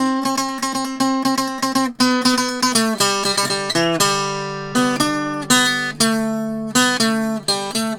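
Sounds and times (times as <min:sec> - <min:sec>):
Appalachian tenor guitar: 0:00.0 - 0:07.9.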